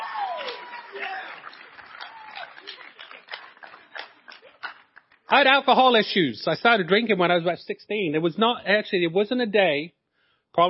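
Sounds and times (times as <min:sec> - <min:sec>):
audience applause: 0:00.0 - 0:05.5
speech: 0:05.3 - 0:10.0.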